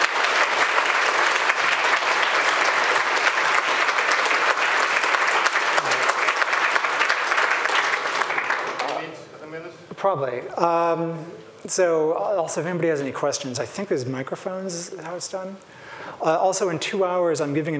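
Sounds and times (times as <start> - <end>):
huge audience applause: 0.0 - 9.1
speech: 10.0 - 17.7.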